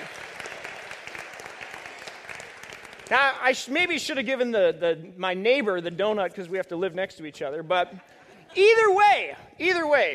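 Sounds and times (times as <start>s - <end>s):
audience applause: 0.0s - 3.7s
speech: 3.1s - 10.1s.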